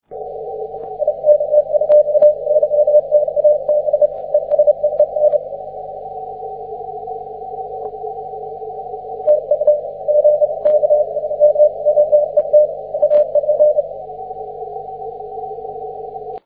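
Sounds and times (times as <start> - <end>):
CW Morse code beeps: 0.8 - 5.5, 9.1 - 14.0.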